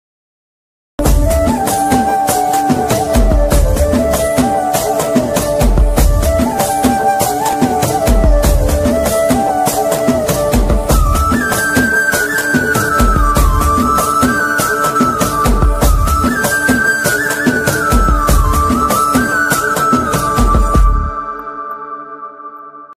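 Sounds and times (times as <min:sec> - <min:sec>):
background music ringtone: 0:01.0 - 0:22.9.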